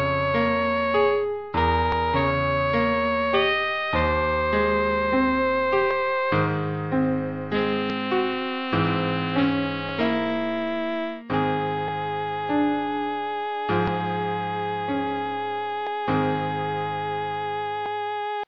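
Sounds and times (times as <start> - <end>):
piano: 0.0 - 18.4
alto saxophone in E-flat: 1.8 - 6.3, 7.5 - 17.4.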